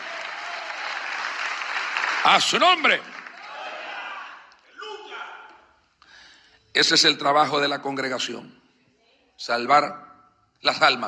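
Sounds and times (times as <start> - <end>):
audience applause: 0.0 - 4.4
speech: 2.2 - 3.1, 6.8 - 8.6, 9.4 - 11.0.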